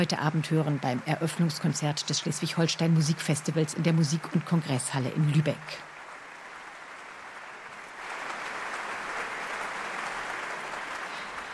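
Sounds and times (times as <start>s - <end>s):
speech: 0.0s - 5.9s
concert applause: 0.0s - 11.5s.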